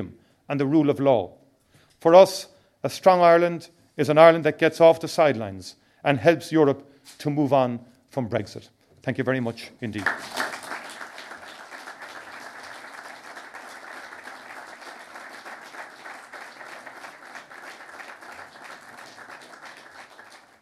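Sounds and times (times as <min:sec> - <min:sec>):
speech: 0:00.0 - 0:01.4, 0:02.0 - 0:10.4
audience applause: 0:09.9 - 0:20.6.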